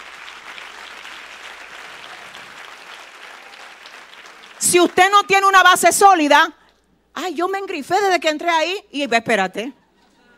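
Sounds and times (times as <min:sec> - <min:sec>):
audience applause: 0:00.0 - 0:05.2
speech: 0:04.6 - 0:06.6, 0:07.2 - 0:09.8.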